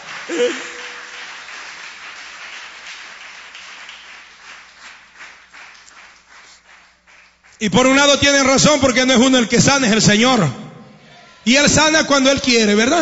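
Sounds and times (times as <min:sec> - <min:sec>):
audience clapping hands: 0:00.0 - 0:08.2
speech: 0:00.3 - 0:00.7, 0:07.6 - 0:10.6, 0:11.4 - 0:13.0.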